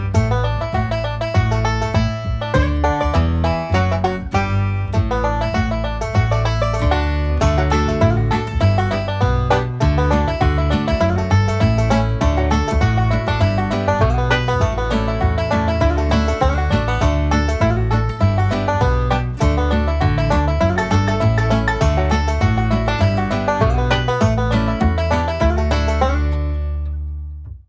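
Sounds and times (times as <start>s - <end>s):
200 BPM backing track: 0.0s - 27.6s.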